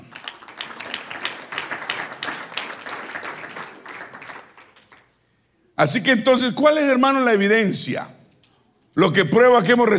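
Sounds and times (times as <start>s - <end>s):
audience applause: 0.0s - 5.1s
speech: 5.8s - 8.2s, 9.0s - 9.9s.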